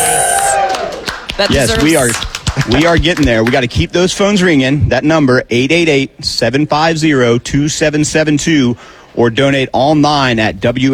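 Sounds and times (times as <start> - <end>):
call center staff whooping: 0.0 - 2.0
call center staff clapping: 0.0 - 3.9
speech: 1.4 - 10.9.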